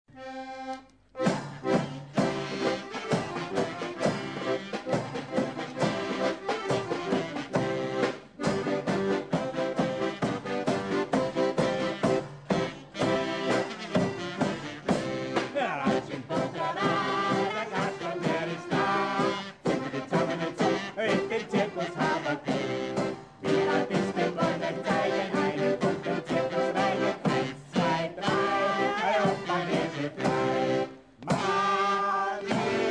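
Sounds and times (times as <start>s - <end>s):
march music: 0.1s - 32.8s.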